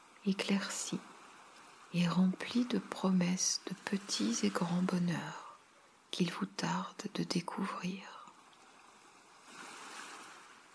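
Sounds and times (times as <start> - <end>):
ocean waves washing on shore: 0.0 - 5.9, 8.4 - 10.7
speech: 0.2 - 1.1, 1.9 - 5.4, 6.1 - 8.2.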